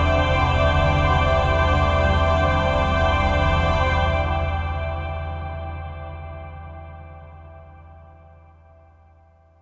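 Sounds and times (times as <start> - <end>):
retro sci-fi planet music loop: 0.0 - 6.3.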